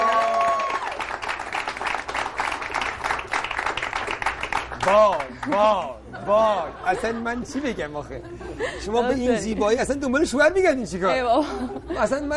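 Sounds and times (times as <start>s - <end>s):
audience applause welcoming a guest: 0.0s - 5.8s
speech: 4.8s - 12.3s
laughter: 5.3s - 9.4s, 11.3s - 12.3s.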